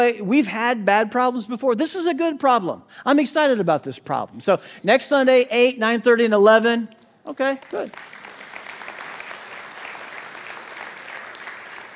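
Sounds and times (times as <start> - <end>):
speech: 0.0 - 8.2
audience applauding: 7.6 - 11.9.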